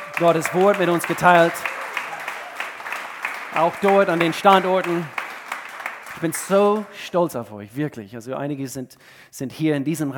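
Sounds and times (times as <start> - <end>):
audience applause: 0.0 - 7.1
speech: 0.2 - 1.7, 3.6 - 5.2, 6.2 - 10.1.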